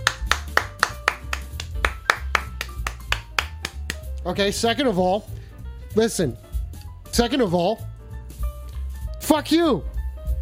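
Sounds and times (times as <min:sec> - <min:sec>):
audience applause: 0:00.0 - 0:03.9
speech: 0:04.2 - 0:05.4, 0:06.0 - 0:06.4, 0:07.2 - 0:07.9, 0:09.3 - 0:09.9.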